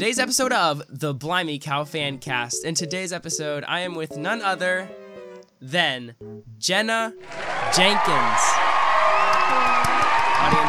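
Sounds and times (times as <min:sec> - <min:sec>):
speech: 0:00.0 - 0:05.0, 0:05.6 - 0:10.6
crowd applauding: 0:07.2 - 0:10.6.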